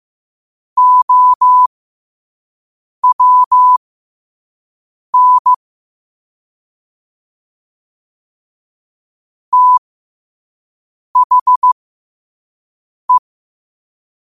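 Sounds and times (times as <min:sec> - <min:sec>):
morse code at 5 wpm: 0:00.8 - 0:01.7, 0:03.0 - 0:03.8, 0:05.2 - 0:05.6, 0:09.6 - 0:09.8, 0:11.2 - 0:11.8.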